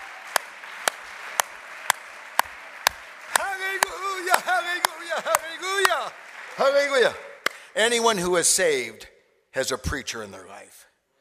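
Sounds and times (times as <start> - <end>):
audience clapping hands: 0.0 - 7.8
speech: 6.1 - 7.2, 7.8 - 10.9.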